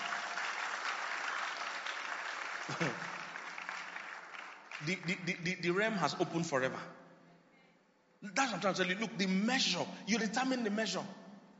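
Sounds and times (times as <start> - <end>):
audience clapping: 0.0 - 5.4
speech: 2.7 - 3.1, 4.8 - 7.0, 8.2 - 11.2.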